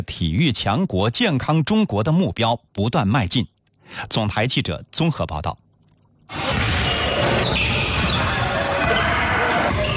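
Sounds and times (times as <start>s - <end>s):
speech: 0.0s - 5.6s
court noise in an air-conditioned community gym: 6.3s - 9.9s
basketballs dribbled and shot in a community gym in Nanchang: 6.4s - 9.9s.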